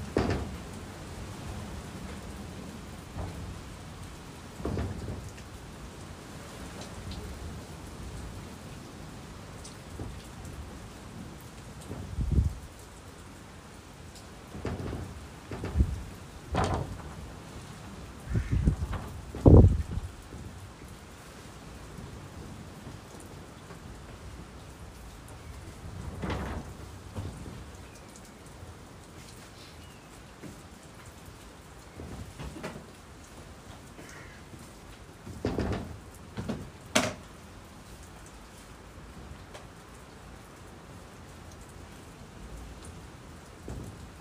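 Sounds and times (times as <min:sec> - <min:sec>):
rain falling under the eaves: 0:00.0 - 0:44.1.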